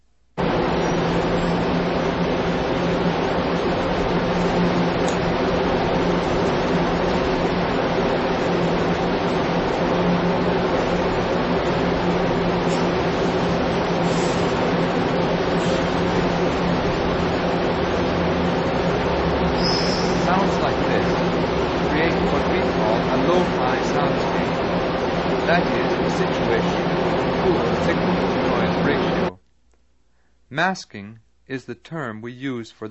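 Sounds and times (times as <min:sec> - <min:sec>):
Eaton's department store exhaust blowing out over pedestrians at a bus stop: 0:00.4 - 0:29.4
speech: 0:30.6 - 0:32.8.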